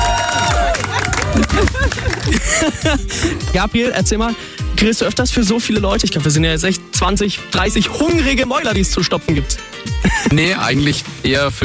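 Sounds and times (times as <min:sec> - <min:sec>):
group shouts and cheers: 0:00.0 - 0:02.9
outdoor group clapping: 0:00.0 - 0:03.1
laughter: 0:00.1 - 0:03.6, 0:09.9 - 0:10.8
speech: 0:01.4 - 0:11.6.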